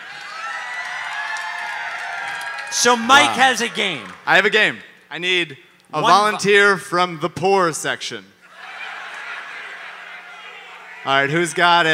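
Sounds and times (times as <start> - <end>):
audience applause: 0.0 - 4.3
audience cheering: 0.0 - 4.4, 8.5 - 11.9
speech: 2.7 - 8.3, 11.0 - 11.9.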